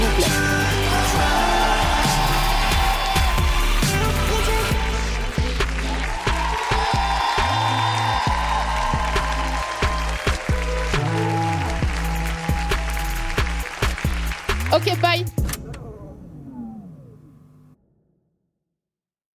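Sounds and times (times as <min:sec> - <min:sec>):
crowd applauding and cheering: 0:00.0 - 0:15.4
loud rhythmic music with a heavy bass beat: 0:00.0 - 0:17.1.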